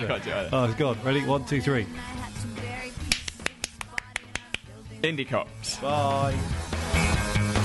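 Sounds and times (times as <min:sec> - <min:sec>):
speech: 0:00.0 - 0:02.3, 0:05.0 - 0:07.5
hands clapping: 0:03.1 - 0:04.7.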